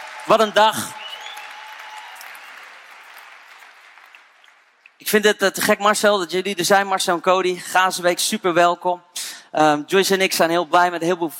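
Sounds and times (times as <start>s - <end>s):
applause for volunteers: 0.0s - 5.0s
speech: 0.2s - 1.0s, 5.0s - 11.3s.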